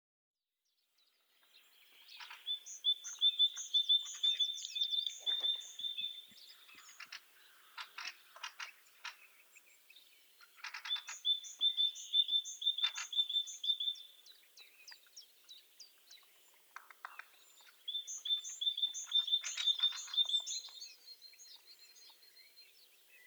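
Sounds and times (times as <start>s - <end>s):
buzzy chatter from other birds: 2.0s - 9.6s, 10.4s - 14.0s, 16.7s - 20.9s.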